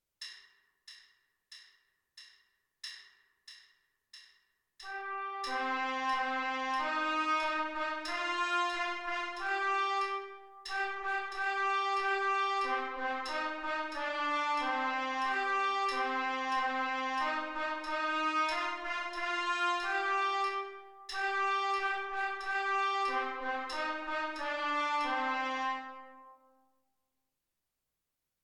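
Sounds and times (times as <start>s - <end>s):
trumpet: 4.8s - 26.7s.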